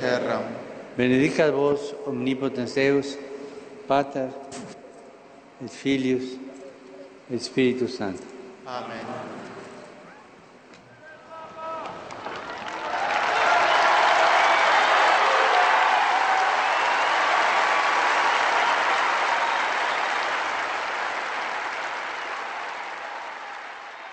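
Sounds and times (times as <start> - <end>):
speech: 0.0 - 3.3, 3.9 - 4.8, 5.6 - 6.5, 7.3 - 9.4
crowd cheering: 10.9 - 24.1
applause: 11.8 - 24.1.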